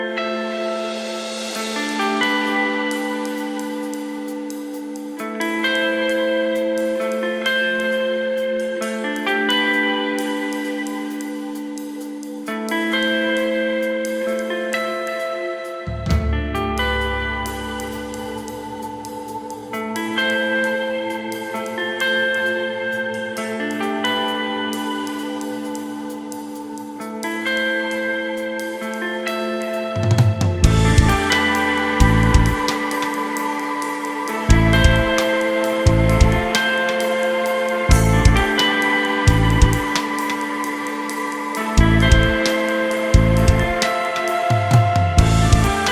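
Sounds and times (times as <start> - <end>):
instrumental music: 0.1 - 45.8.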